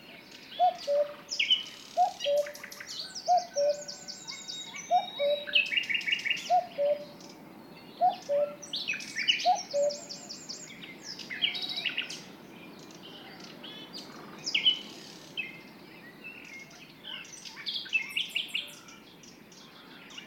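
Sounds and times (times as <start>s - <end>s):
songbirds chirping and warbling: 0.0s - 20.2s
cuckoo two-note descending cu-coo call: 0.5s - 12.2s.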